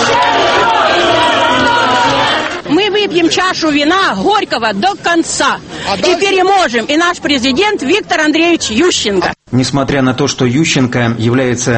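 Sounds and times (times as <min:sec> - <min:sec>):
crowd of about 2,000 supporters cheering outside the Central Election Commission building: 0:00.0 - 0:03.4
speech: 0:03.0 - 0:11.7.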